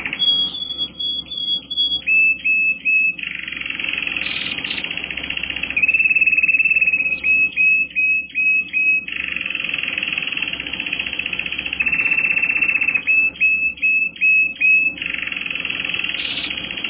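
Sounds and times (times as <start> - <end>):
canary song with fast trills and rolling tours: 0.0 - 16.8.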